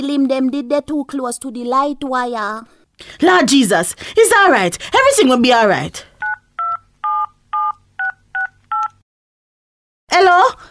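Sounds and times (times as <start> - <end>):
speech: 0.0 - 6.1, 10.1 - 10.6
telephone number dialed with touch-tone beeps: 6.2 - 9.0.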